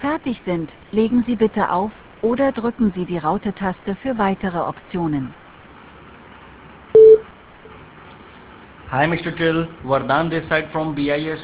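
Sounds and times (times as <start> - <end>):
speech: 0.1 - 5.4, 8.9 - 11.4
mobile phone voicemail beep: 7.0 - 7.3.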